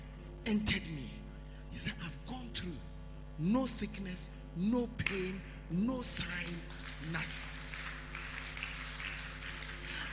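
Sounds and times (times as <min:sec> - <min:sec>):
speech: 0:00.5 - 0:07.5
audience clapping: 0:06.2 - 0:10.1.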